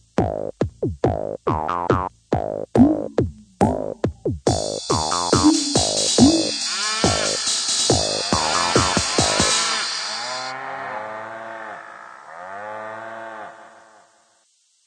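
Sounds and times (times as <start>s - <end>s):
downtempo trip-hop music: 1.1s - 9.9s.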